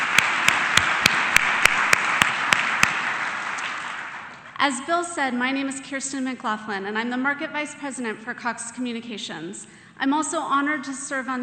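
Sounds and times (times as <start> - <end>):
audience applause: 0.0 - 4.5
sharp rhythmic clapping: 0.0 - 4.6
speech: 4.6 - 11.4.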